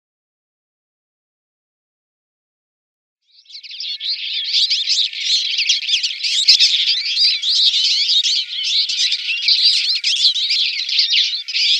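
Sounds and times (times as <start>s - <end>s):
Eurasian linnet singing buzzy notes and whistled slurs: 3.3s - 11.7s.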